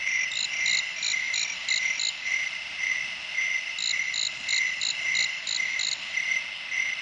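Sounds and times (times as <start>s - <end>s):
cicada singing: 0.1s - 2.5s, 3.4s - 6.9s.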